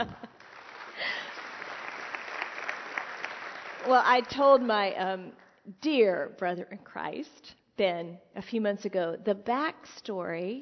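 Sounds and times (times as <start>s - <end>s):
speech: 0.0s - 0.3s, 3.8s - 10.6s
audience clapping at a church ministry event: 0.0s - 4.6s.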